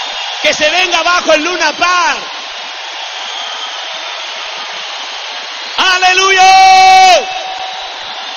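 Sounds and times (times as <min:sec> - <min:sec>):
crowd shouting at a worship rally in the Luna Park arena: 0:00.0 - 0:08.3
speech: 0:00.4 - 0:02.4, 0:05.9 - 0:07.4.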